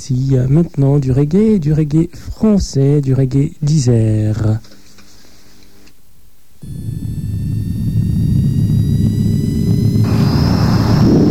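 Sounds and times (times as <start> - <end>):
speech: 0.0 - 4.8, 6.6 - 7.1
airplane engines roaring on takeoff for Pointe-à-Pitre: 6.6 - 11.2
high jet engine whine: 6.6 - 11.2.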